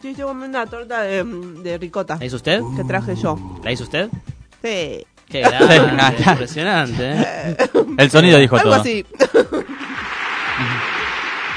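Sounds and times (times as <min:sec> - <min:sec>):
speech: 0:00.0 - 0:09.7, 0:10.6 - 0:10.9
laughter: 0:05.4 - 0:11.3
audience ovation applause: 0:09.7 - 0:11.5.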